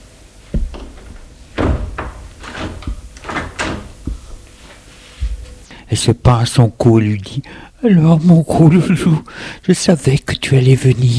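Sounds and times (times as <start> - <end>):
door being closed: 0.5 - 4.6
speech: 5.9 - 11.1.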